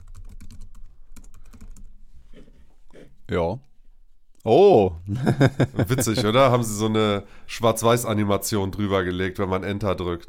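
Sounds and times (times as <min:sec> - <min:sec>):
typing a search on a computer keyboard: 0:00.0 - 0:01.9
speech: 0:03.0 - 0:03.7, 0:04.4 - 0:10.2
laughter: 0:05.1 - 0:06.9.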